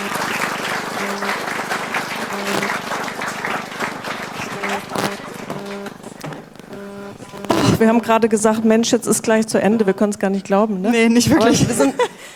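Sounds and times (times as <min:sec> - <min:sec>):
audience applause: 0:00.0 - 0:08.6
tonal blips: 0:00.0 - 0:11.4
voices cheering: 0:00.0 - 0:12.0
laughter: 0:00.0 - 0:12.3
speech: 0:07.8 - 0:12.2.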